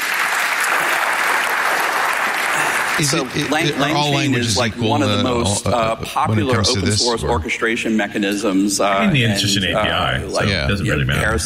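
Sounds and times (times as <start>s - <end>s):
crowd applause: 0.0s - 4.9s
speech: 3.0s - 11.4s.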